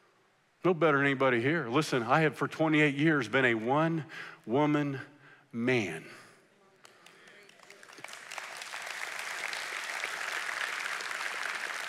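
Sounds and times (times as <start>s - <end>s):
speech: 0.6s - 6.2s
audience clapping: 6.8s - 11.8s.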